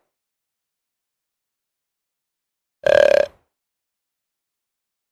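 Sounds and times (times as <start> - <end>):
deer bleating: 2.9 - 3.4.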